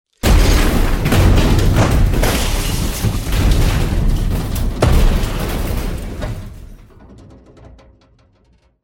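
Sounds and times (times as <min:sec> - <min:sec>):
glass breaking: 0:00.1 - 0:07.0
powerful crash: 0:00.1 - 0:07.4
debris falling: 0:00.1 - 0:08.7.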